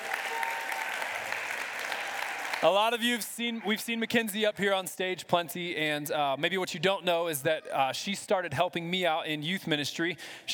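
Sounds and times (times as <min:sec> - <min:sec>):
audience applause: 0:00.0 - 0:03.8
speech: 0:02.6 - 0:10.5.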